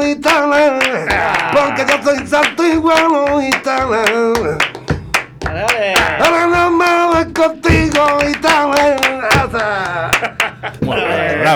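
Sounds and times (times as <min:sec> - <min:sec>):
hand clapping: 0:00.0 - 0:10.9
speech: 0:00.1 - 0:04.7
laughter: 0:00.5 - 0:11.5.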